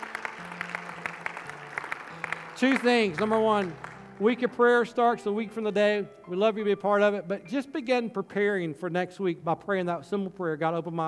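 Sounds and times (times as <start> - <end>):
audience applause: 0.0 - 4.4
speech: 2.6 - 11.0.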